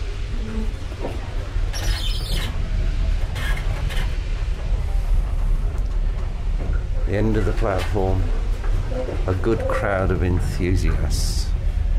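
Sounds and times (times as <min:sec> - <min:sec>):
two steam locomotives hauling a heavy train: 0:00.0 - 0:11.9
speech: 0:07.1 - 0:11.5.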